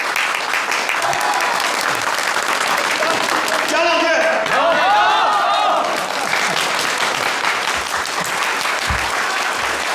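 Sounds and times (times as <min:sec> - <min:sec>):
reunion audience clapping: 0:00.0 - 0:09.9.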